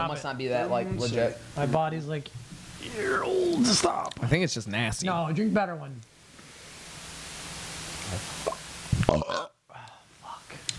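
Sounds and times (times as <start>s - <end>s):
speech: 0.0s - 6.1s, 8.1s - 8.3s, 9.1s - 9.5s
person burping: 8.4s - 9.6s.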